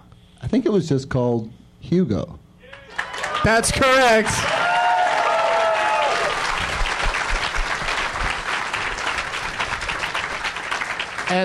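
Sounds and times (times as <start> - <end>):
speech: 0.5 - 2.4, 3.4 - 4.6, 11.3 - 11.4
audience clapping: 2.6 - 11.4.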